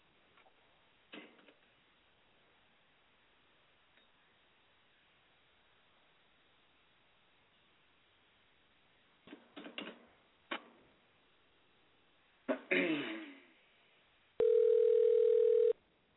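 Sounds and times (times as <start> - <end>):
telephone ringing tone on outgoing call: 14.4 - 15.8.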